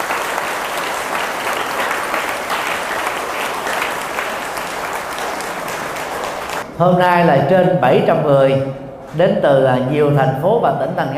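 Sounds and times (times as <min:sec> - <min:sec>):
large audience applause: 0:00.0 - 0:06.6
speech: 0:06.8 - 0:11.1.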